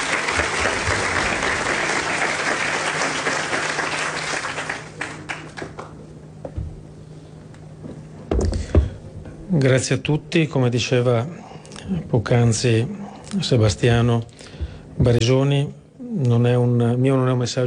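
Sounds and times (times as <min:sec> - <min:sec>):
audience applause: 0:00.0 - 0:06.0
speech: 0:09.5 - 0:14.4, 0:15.0 - 0:17.6.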